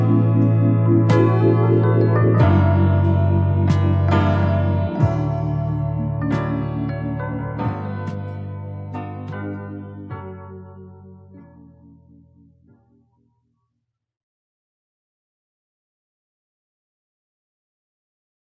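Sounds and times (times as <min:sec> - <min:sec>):
piano song: 0:00.0 - 0:13.1.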